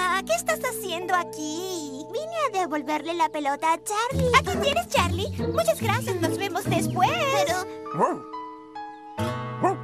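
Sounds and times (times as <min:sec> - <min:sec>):
speech: 0:00.2 - 0:08.4
dog barking: 0:07.9 - 0:08.3, 0:09.6 - 0:09.8.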